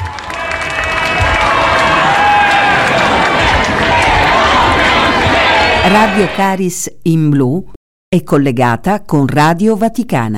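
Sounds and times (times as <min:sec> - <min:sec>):
pilgrims applauding and cheering in square: 0:00.0 - 0:06.4
speech: 0:05.9 - 0:10.3.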